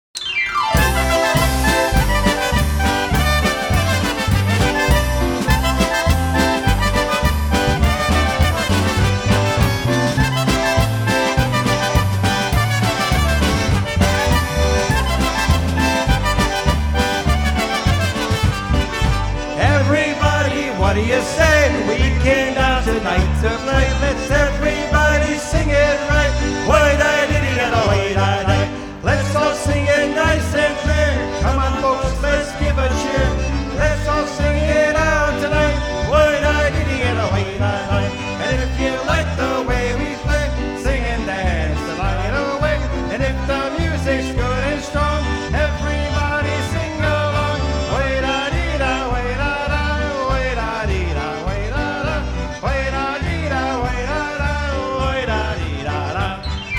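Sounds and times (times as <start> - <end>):
polka music: 0.2 - 56.7.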